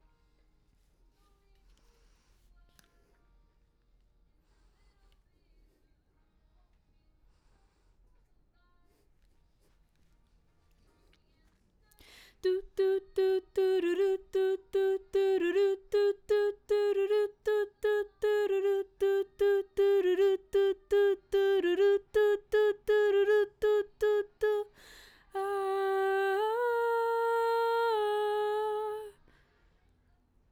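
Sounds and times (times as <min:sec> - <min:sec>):
background vocals: 0:12.0 - 0:29.3.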